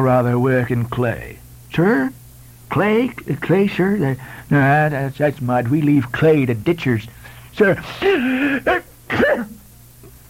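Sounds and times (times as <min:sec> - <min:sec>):
speech: 0:00.0 - 0:09.5
sneeze: 0:08.0 - 0:09.6.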